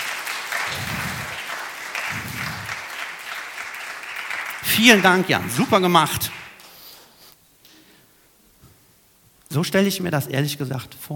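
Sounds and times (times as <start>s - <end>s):
audience applause: 0.0s - 6.6s
speech: 4.8s - 6.4s, 9.6s - 11.1s.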